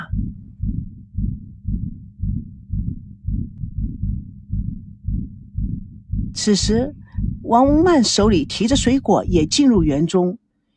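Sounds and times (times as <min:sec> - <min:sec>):
rapid heartbeat: 0:00.0 - 0:10.1
speech: 0:06.4 - 0:10.4.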